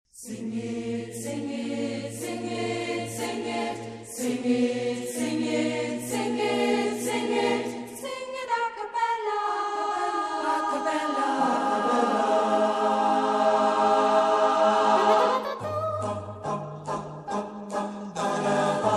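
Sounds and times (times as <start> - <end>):
a cappella singing: 0.1 - 18.9.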